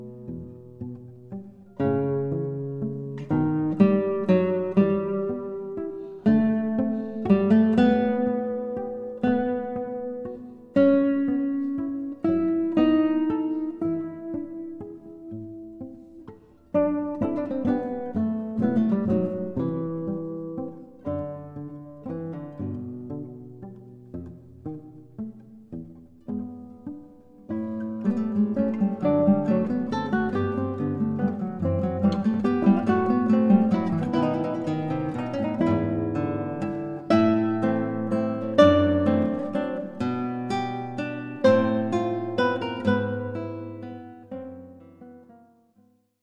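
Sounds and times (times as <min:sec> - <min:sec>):
guitar duo: 0:00.0 - 0:46.0.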